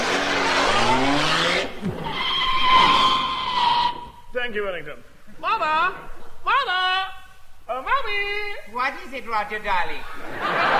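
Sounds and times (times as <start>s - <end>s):
comedy sound effect of a car speeding off: 0.0s - 4.0s
brief squeal: 2.0s - 4.3s
speech: 4.4s - 7.1s, 7.7s - 10.7s
laughter: 10.0s - 10.7s.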